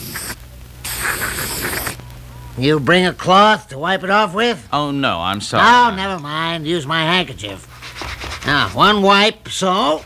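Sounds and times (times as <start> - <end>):
aerosol can of Otis bathroom cleanser spraying onto a bloodstain: 0.0 - 2.0
speech: 2.6 - 7.7, 8.4 - 10.0.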